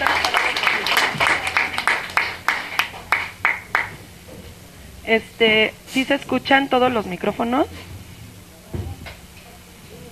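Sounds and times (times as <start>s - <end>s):
crowd applauding: 0.0s - 4.1s
speech: 5.1s - 7.9s.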